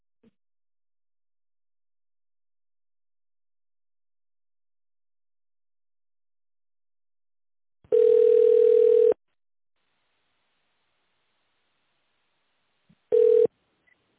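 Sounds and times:
telephone ringback tone: 0:07.9 - 0:09.2, 0:13.1 - 0:13.5.

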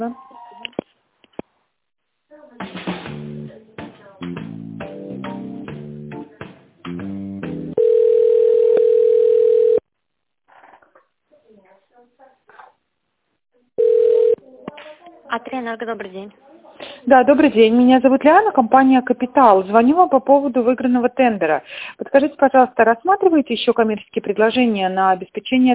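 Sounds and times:
speech: 0:00.0 - 0:00.3, 0:15.6 - 0:16.4, 0:17.1 - 0:25.7
telephone ringback tone while a call connects: 0:07.8 - 0:09.8, 0:13.8 - 0:14.4.

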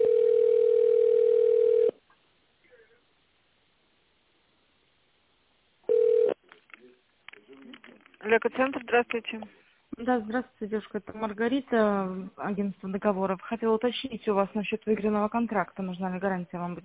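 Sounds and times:
telephone ringback tone while a call connects: 0:00.0 - 0:01.9, 0:05.9 - 0:06.4
speech: 0:08.3 - 0:16.8.

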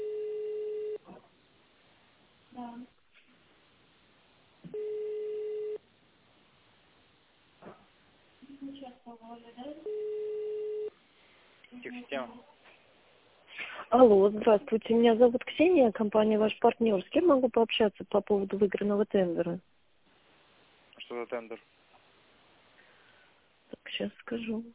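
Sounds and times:
low buzzing telephone ringback tones on an outgoing call: 0:00.0 - 0:01.0, 0:04.7 - 0:05.8, 0:09.6 - 0:11.0
speech: 0:08.7 - 0:10.2, 0:11.7 - 0:12.5, 0:13.9 - 0:19.7, 0:21.0 - 0:21.8, 0:23.9 - 0:24.7.

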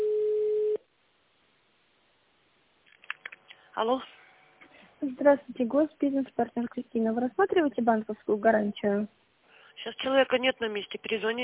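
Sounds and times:
telephone ringback tone: 0:00.0 - 0:00.8
speech: 0:03.8 - 0:04.2, 0:05.0 - 0:09.2, 0:09.8 - 0:11.4.

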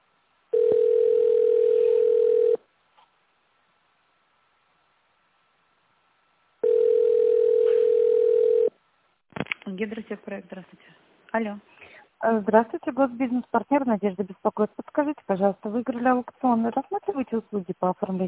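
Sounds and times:
telephone ringback tone: 0:00.5 - 0:02.6, 0:06.6 - 0:08.7
speech: 0:09.8 - 0:18.2.

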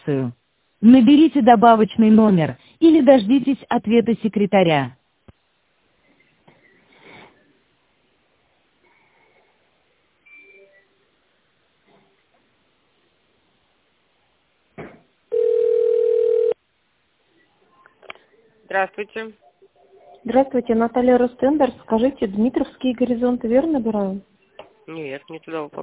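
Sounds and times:
speech: 0:00.0 - 0:05.0, 0:18.8 - 0:19.5, 0:20.2 - 0:24.3, 0:24.9 - 0:25.8
telephone ringback tone: 0:15.3 - 0:16.6.

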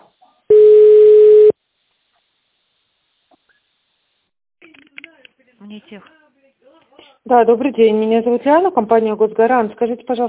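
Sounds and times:
telephone ringback tone on an automated line during call transfer: 0:00.5 - 0:01.5
speech: 0:05.7 - 0:06.2, 0:07.3 - 0:10.2.

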